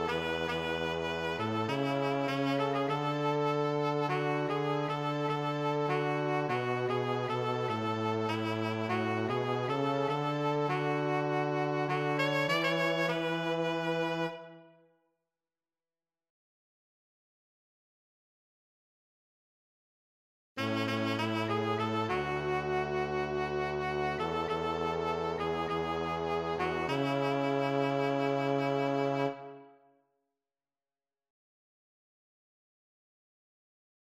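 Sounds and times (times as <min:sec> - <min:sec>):
saxophone playing: 0:00.0 - 0:14.8, 0:20.6 - 0:29.7.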